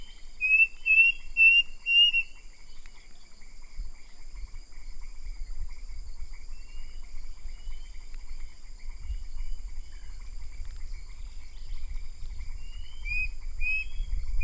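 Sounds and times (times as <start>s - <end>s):
bird whistles: 0.0s - 2.4s, 12.7s - 14.4s.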